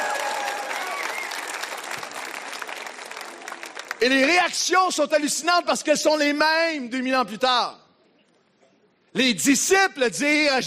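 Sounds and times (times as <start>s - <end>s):
whistles and cheers: 0.0s - 1.8s
audience applause: 0.0s - 4.2s
speech: 4.0s - 7.8s, 9.2s - 10.6s.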